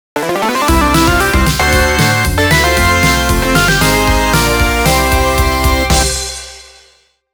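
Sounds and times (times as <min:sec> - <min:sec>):
synth stage clear jingle: 0:00.2 - 0:06.7.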